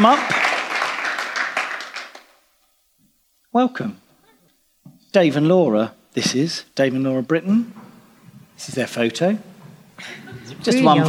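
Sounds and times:
speech: 0.0s - 0.4s, 3.6s - 4.0s, 5.1s - 7.8s, 8.6s - 11.0s
crowd applause: 0.0s - 2.4s.

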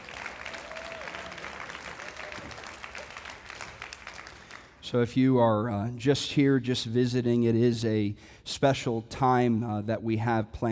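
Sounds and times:
audience applause: 0.0s - 4.8s
speech: 4.9s - 10.6s.

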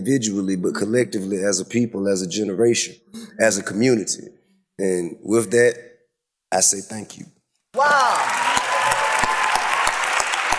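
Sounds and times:
speech: 0.0s - 5.9s, 6.5s - 8.4s
audience applause: 7.8s - 10.5s.

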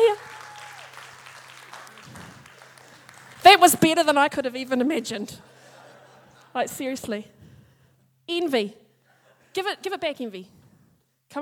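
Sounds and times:
audience applause: 0.0s - 3.8s
speech: 3.6s - 5.6s, 6.6s - 7.5s, 8.3s - 8.8s, 9.6s - 10.6s
laughter: 5.4s - 6.6s.

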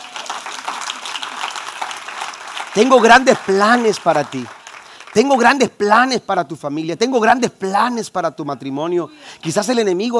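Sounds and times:
audience applause: 0.0s - 5.6s
speech: 2.8s - 4.6s, 5.2s - 10.1s.

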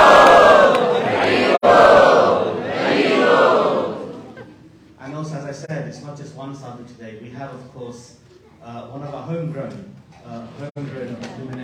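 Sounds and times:
Hare Krishna congregation shouting Hari Bol at a London sadhu sanga: 0.0s - 4.4s
speech: 6.5s - 11.6s.

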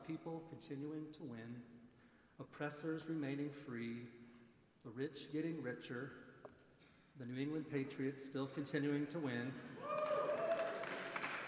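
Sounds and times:
speech: 0.1s - 4.2s, 4.8s - 6.3s, 7.2s - 10.0s
audience clapping: 9.9s - 11.4s.

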